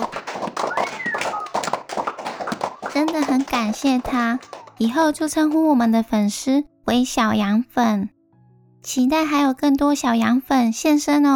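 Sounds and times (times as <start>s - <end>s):
hand clapping: 0.0s - 5.7s
speech: 3.6s - 8.2s, 8.8s - 11.3s.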